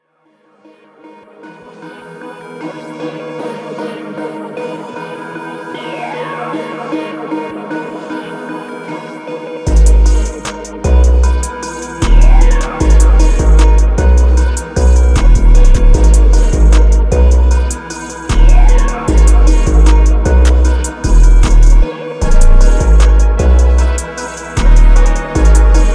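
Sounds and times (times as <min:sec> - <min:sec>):
instrumental type beat: 0:09.6 - 0:25.9.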